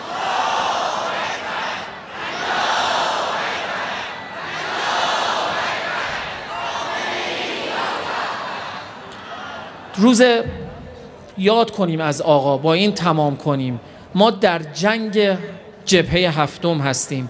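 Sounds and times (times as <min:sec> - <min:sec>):
crowd chanting at a political gathering in Iran: 0:00.0 - 0:09.9
speech: 0:10.0 - 0:10.6, 0:11.4 - 0:17.2.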